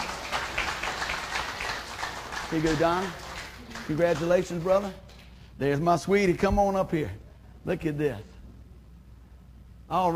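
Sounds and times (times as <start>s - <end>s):
round of applause: 0.0s - 5.0s
speech: 2.5s - 3.2s, 3.9s - 5.0s, 5.6s - 8.3s, 9.9s - 10.1s.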